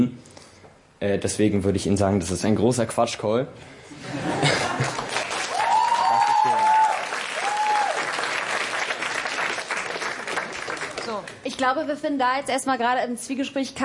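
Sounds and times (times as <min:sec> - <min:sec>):
speech: 0:00.0 - 0:00.2, 0:01.0 - 0:05.1, 0:11.6 - 0:13.8
laughter: 0:03.9 - 0:05.3
audience applause: 0:04.4 - 0:11.4
whoops and calls: 0:05.5 - 0:08.1.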